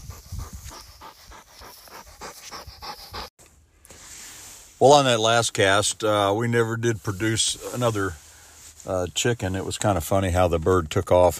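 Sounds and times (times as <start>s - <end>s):
hunting dog panting: 0.0s - 3.3s
speech: 4.8s - 8.2s, 8.8s - 11.3s.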